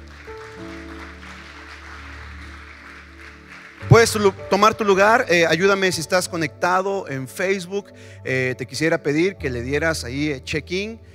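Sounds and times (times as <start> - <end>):
audience applauding: 0.0 - 5.3
speech: 3.9 - 11.1.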